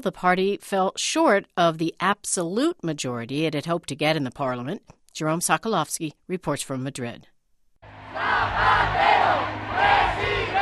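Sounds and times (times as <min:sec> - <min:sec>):
speech: 0:00.0 - 0:07.3
crowd of Zapatero fans celebrating in the streets: 0:07.8 - 0:10.5.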